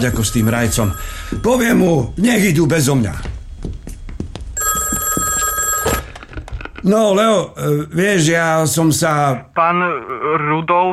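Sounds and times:
telephone with bright electronic ring ringing: 0.0 - 2.2, 4.6 - 6.3
speech: 0.0 - 3.4, 6.8 - 10.9.

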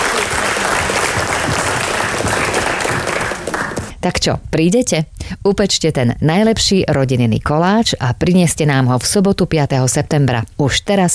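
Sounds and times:
audience applause: 0.0 - 3.9
speech: 4.0 - 11.1.

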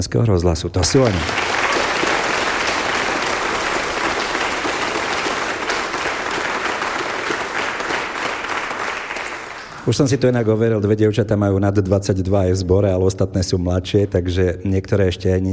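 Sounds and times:
speech: 0.0 - 1.6, 9.9 - 15.5
audience applause: 0.9 - 10.0.

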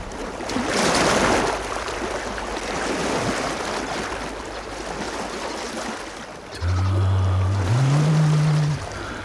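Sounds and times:
sea waves: 0.0 - 9.2
low droning tone: 6.5 - 9.2.

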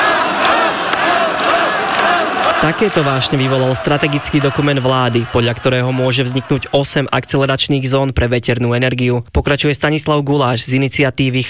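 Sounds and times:
overlapping shouting voices: 0.0 - 7.0
audience applause: 0.0 - 7.3
agitated crowd roar: 0.0 - 7.4
speech: 2.6 - 11.4.

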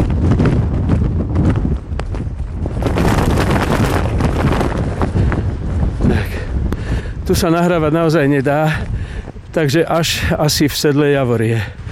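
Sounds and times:
jacket hood flapping and rattling in strong wind: 0.0 - 6.1
strong wind roaring into the microphone: 0.0 - 11.8
speech: 7.3 - 8.9, 9.5 - 11.8.

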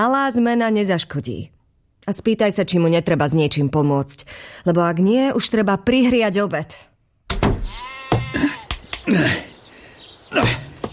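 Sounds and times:
speech: 0.0 - 6.9, 8.3 - 9.5, 10.3 - 10.6
sheep bleating: 7.7 - 8.7.

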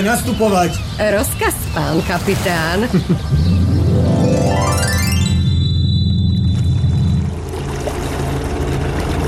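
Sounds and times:
speech: 0.0 - 3.6
motorboat engine drone: 0.0 - 9.2
water churning and splashing: 1.6 - 3.4, 6.2 - 9.2
rising tonal whine: 3.3 - 7.5.

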